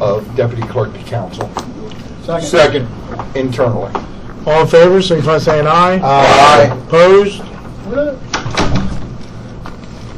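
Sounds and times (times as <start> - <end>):
speech: 0.0 - 8.6
door opening during a council meeting: 8.3 - 9.1.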